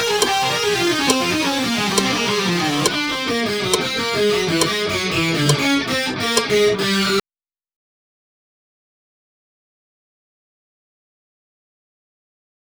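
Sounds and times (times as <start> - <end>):
slow music loop: 0.0 - 7.0.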